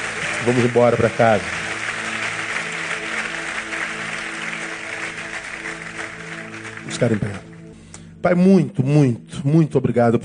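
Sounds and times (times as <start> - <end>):
audience applauding: 0.0 - 7.7
speech: 0.4 - 1.6, 7.0 - 7.5, 8.2 - 10.2.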